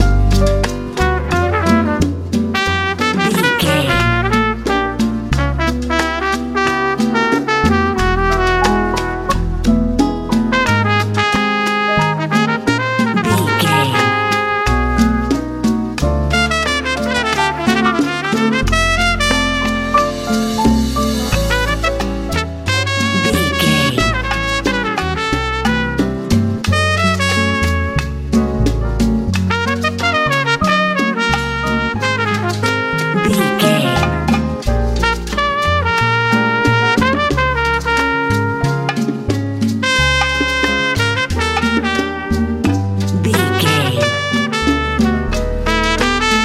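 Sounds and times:
Cuban Latin music: 0:00.0 - 0:46.4.

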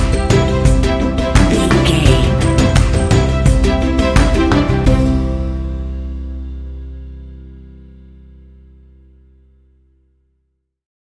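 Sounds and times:
cinematic folk music: 0:00.0 - 0:08.0.

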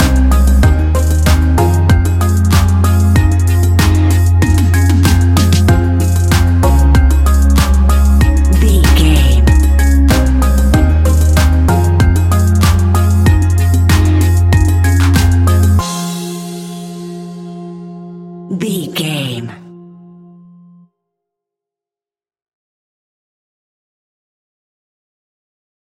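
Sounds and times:
fast-paced club music with bliss beats: 0:00.0 - 0:16.0.

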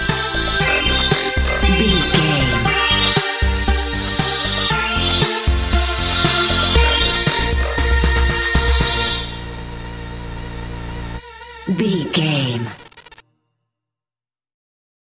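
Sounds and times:
bright euro dance music: 0:00.0 - 0:09.2, 0:11.7 - 0:12.8.

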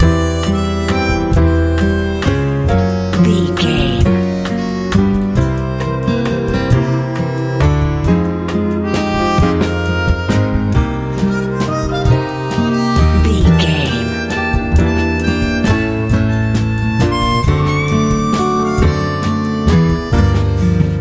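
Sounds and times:
country ballad: 0:00.0 - 0:20.9.

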